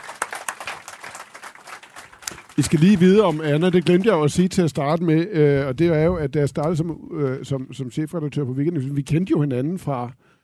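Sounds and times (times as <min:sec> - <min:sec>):
audience applause welcoming a guest onto a stage: 0:00.0 - 0:04.6
speech: 0:02.6 - 0:10.4.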